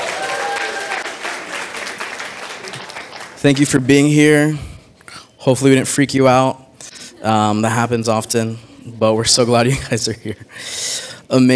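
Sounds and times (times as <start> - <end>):
audience applause welcoming first-time visitors: 0.0 - 3.8
speech: 3.4 - 4.7, 5.4 - 11.5.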